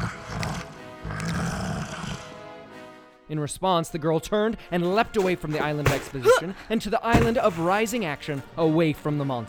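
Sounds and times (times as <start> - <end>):
Minotaur monster snarling roar: 0.0 - 2.4
speech: 3.3 - 9.4.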